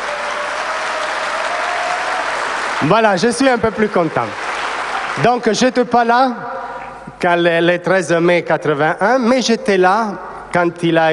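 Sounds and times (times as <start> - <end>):
audience applauding: 0.0 - 5.5
speech: 2.8 - 4.4, 5.2 - 6.6, 7.2 - 11.1.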